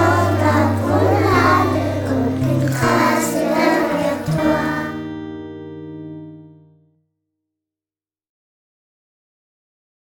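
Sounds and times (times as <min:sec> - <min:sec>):
song: 0:00.0 - 0:06.7.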